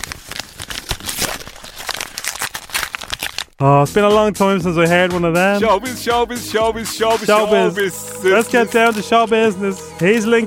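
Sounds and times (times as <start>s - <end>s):
envelope crinkling and tearing as it is opened: 0.0s - 3.6s
speech: 3.6s - 10.4s.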